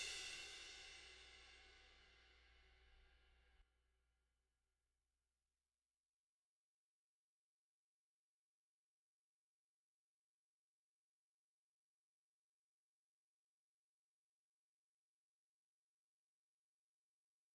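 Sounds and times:
drums: 0:00.0 - 0:02.3.

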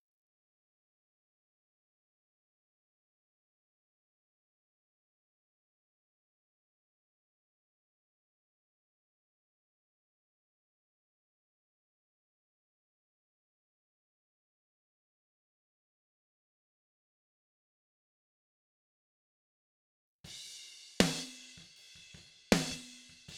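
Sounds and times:
snare drum: 0:20.3 - 0:23.3.

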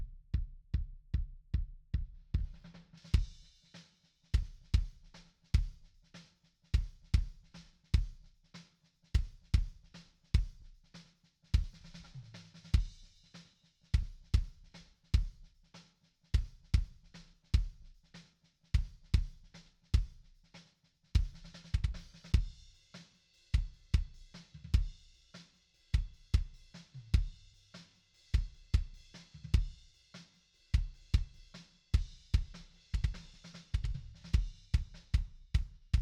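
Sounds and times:
kick drum: 0:00.0 - 0:03.5, 0:04.3 - 0:05.9, 0:06.7 - 0:08.3, 0:09.2 - 0:10.8, 0:11.6 - 0:12.1, 0:12.7 - 0:13.1, 0:13.9 - 0:15.5, 0:16.3 - 0:18.0, 0:18.7 - 0:20.3, 0:21.2 - 0:22.7, 0:23.6 - 0:25.1, 0:25.9 - 0:27.5, 0:28.3 - 0:29.9, 0:30.7 - 0:36.0.

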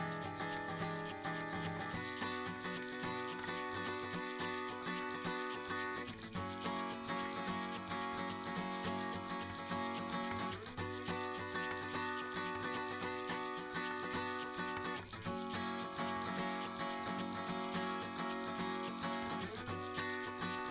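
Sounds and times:
acoustic percussion: 0:00.0 - 0:20.6.

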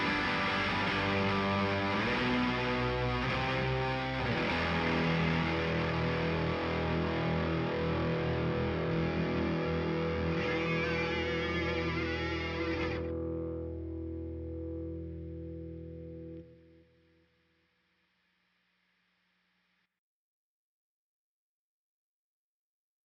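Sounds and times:
guitars: 0:00.0 - 0:17.3.

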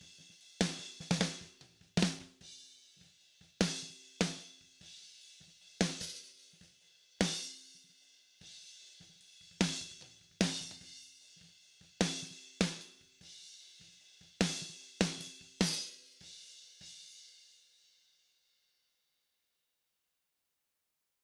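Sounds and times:
snare drum: 0:00.0 - 0:02.4, 0:03.6 - 0:04.6, 0:05.8 - 0:06.5, 0:09.5 - 0:10.9, 0:11.9 - 0:13.0, 0:14.4 - 0:16.3.

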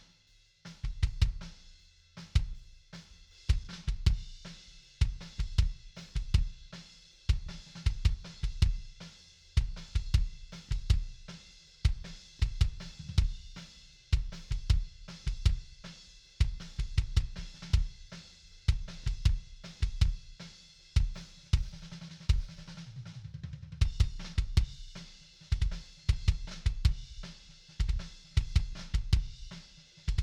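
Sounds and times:
kick drum: 0:00.8 - 0:01.6, 0:02.3 - 0:02.6, 0:03.5 - 0:06.6, 0:07.3 - 0:09.0, 0:09.6 - 0:18.1, 0:18.7 - 0:20.4, 0:21.0 - 0:22.7, 0:23.8 - 0:30.2.

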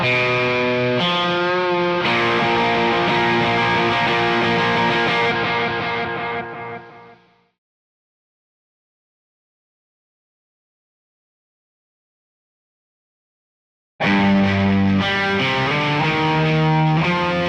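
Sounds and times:
bass guitar: 0:00.0 - 0:07.3, 0:14.0 - 0:17.4.

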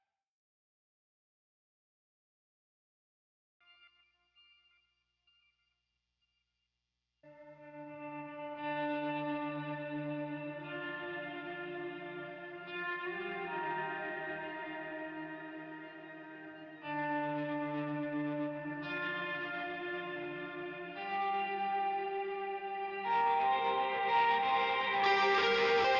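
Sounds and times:
guitars: 0:07.4 - 0:25.9.

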